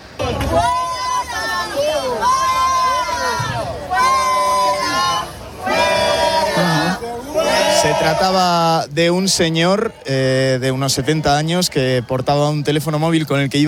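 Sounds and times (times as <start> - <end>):
crowd of protesters heckling a man: 0.2 - 8.6
speech: 7.8 - 13.6.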